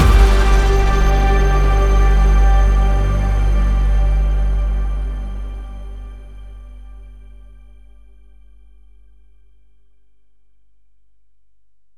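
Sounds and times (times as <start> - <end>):
trailer music: 0.0 - 8.0.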